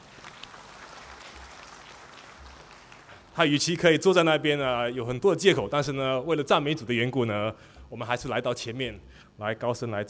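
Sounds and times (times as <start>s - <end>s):
room full of people clapping: 0.0s - 3.4s
speech: 3.4s - 10.0s.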